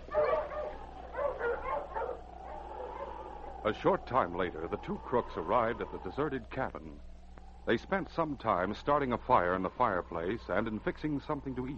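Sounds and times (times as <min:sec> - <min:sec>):
sled huskies yelping and barking excitedly: 0:00.0 - 0:04.0
low steady hum: 0:00.0 - 0:11.7
speech: 0:03.6 - 0:07.1, 0:07.7 - 0:11.7.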